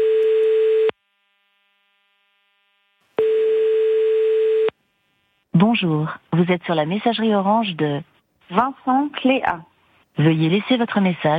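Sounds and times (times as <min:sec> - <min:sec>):
telephone ringing tone during a call: 0:00.0 - 0:00.9, 0:03.2 - 0:04.7
speech: 0:05.6 - 0:11.3.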